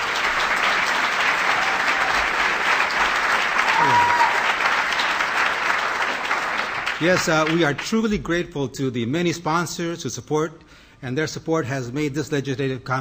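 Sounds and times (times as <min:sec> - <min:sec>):
audience applause at a conference: 0:00.0 - 0:08.0
speech: 0:07.0 - 0:12.9.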